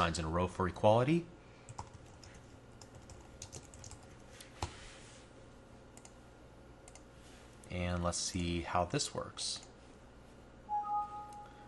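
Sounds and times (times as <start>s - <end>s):
speech: 0.0s - 1.4s, 7.8s - 9.7s
faint steady hum: 0.0s - 11.6s
typing on a computer keyboard: 1.7s - 4.7s.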